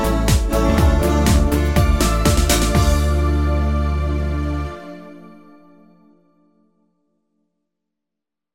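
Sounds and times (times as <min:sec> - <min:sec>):
disco fox music: 0:00.0 - 0:05.2.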